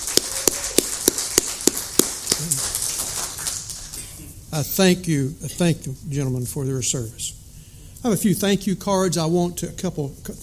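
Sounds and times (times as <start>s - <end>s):
audience applause: 0.0s - 3.9s
speech: 4.5s - 7.4s, 8.0s - 10.4s.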